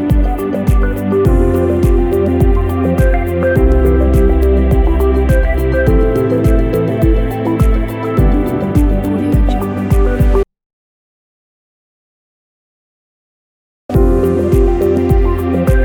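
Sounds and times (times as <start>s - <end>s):
minimal ambient background: 0.0s - 10.4s, 14.0s - 15.8s.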